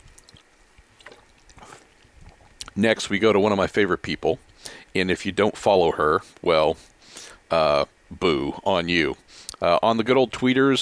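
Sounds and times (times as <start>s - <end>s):
quick sip from a drink: 0.0s - 2.8s
speech: 2.8s - 6.9s, 7.5s - 10.8s.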